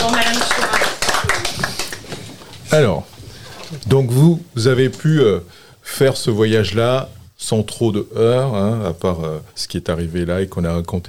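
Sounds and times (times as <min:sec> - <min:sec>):
applause: 0:00.0 - 0:02.3
speech: 0:02.8 - 0:03.1, 0:03.7 - 0:11.0.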